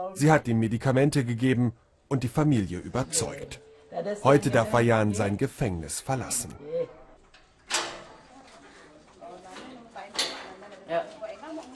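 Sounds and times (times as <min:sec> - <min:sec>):
speech: 0:00.0 - 0:07.0
lock being unlocked on a barred prison cell door in Bali, Indonesia: 0:07.3 - 0:08.2.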